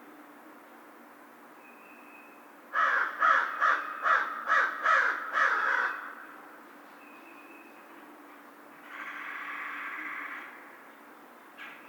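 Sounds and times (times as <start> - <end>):
American crow caws: 2.8 - 6.2, 8.8 - 10.6.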